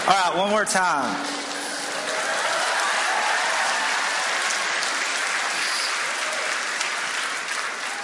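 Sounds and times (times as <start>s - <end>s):
speech: 0.1s - 1.4s
audience clapping: 1.2s - 8.0s.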